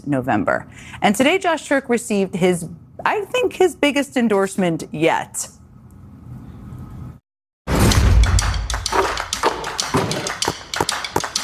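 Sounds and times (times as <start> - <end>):
speech: 0.0 - 5.6
basketball bouncing for a game of horse: 8.8 - 11.3.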